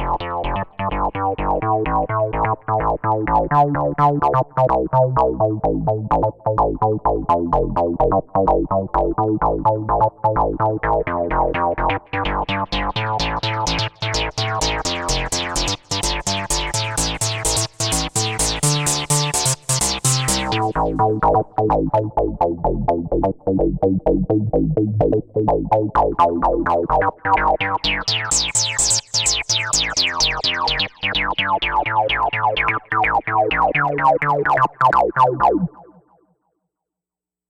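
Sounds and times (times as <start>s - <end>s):
FM bass synth: 0.0s - 36.0s.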